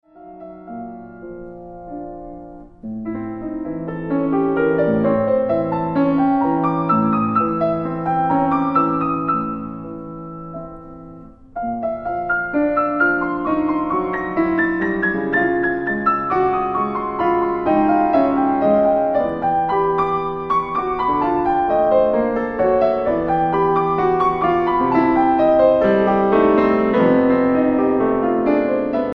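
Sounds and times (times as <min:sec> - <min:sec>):
piano prelude: 0:00.0 - 0:29.1.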